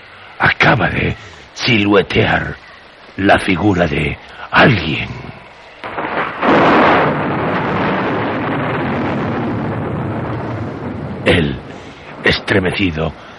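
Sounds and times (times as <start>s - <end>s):
speech: 0.6s - 5.3s, 12.5s - 13.3s
loud thunderclap: 5.8s - 12.8s.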